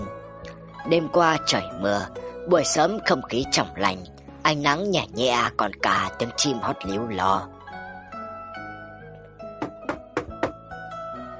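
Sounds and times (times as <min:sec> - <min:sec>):
speech: 0:00.8 - 0:07.6
knocking on a door: 0:09.6 - 0:10.6.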